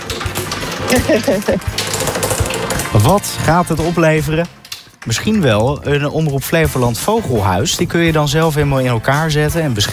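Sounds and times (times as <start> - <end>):
prize wheel of fortune spinning: 0.0 - 9.9
speech: 0.9 - 2.2, 2.9 - 9.9.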